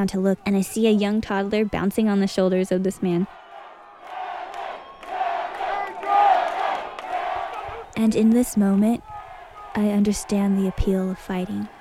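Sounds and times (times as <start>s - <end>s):
speech: 0.0s - 3.4s, 8.0s - 9.1s, 9.8s - 11.7s
roaring fight crowd: 0.0s - 11.7s.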